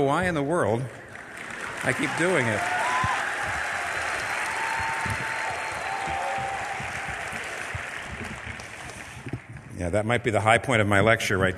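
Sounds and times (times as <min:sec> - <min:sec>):
speech: 0:00.0 - 0:01.0, 0:01.8 - 0:02.8, 0:09.8 - 0:11.5
audience applause: 0:01.0 - 0:09.7.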